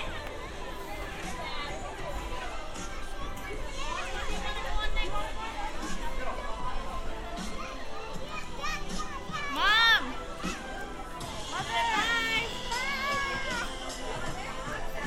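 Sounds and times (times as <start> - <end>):
busy crowd chatter at Santa Monica Pier: 0.0 - 15.0
children's shouts and excited calls: 7.4 - 14.0.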